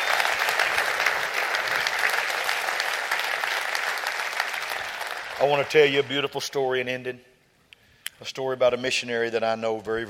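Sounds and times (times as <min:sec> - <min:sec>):
audience clapping hands: 0:00.0 - 0:06.6
speech: 0:05.4 - 0:07.3, 0:08.2 - 0:10.0.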